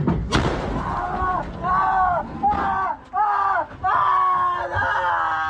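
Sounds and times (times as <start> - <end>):
airstrike explosions on paramedic teams in Meifadun: 0.2 - 2.7
people shouting and screaming: 0.5 - 5.4.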